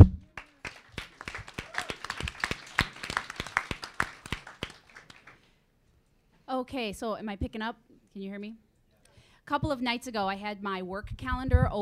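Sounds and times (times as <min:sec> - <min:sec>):
small group applauding: 0:00.0 - 0:05.6
speech: 0:06.6 - 0:08.7, 0:09.5 - 0:11.8.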